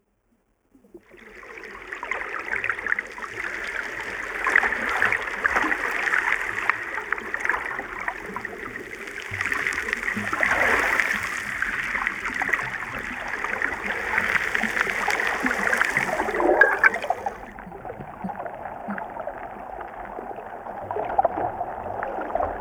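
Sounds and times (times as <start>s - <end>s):
water: 0.0s - 22.6s
steel stones: 15.8s - 17.4s.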